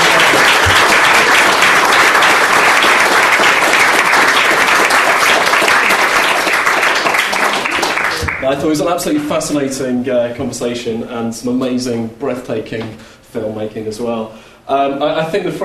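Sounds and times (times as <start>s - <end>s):
audience applause: 0.0s - 8.5s
speech: 8.5s - 15.6s.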